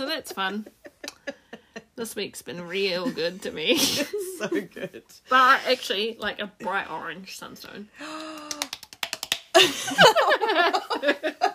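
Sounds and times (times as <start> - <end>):
speech: 0.2 - 1.4, 2.0 - 8.4, 9.6 - 11.5
laughter: 0.3 - 1.9, 3.0 - 5.0, 9.6 - 11.5
hands slapping cheeks: 8.0 - 9.6.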